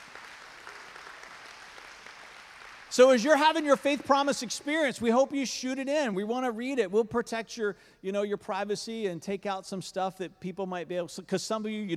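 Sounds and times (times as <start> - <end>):
audience applause: 0.0 - 4.1
speech: 2.9 - 11.9.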